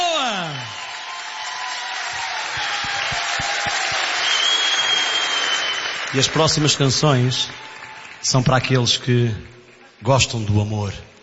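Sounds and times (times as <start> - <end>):
audience applause: 0.0 - 10.0
speech: 6.1 - 7.6, 8.2 - 11.1.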